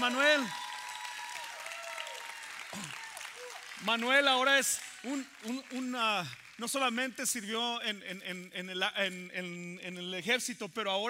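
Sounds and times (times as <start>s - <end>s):
speech: 0.0s - 0.6s, 2.8s - 3.0s, 3.8s - 11.0s
whistles and cheering voices: 0.0s - 3.7s
audience applause: 0.0s - 7.0s.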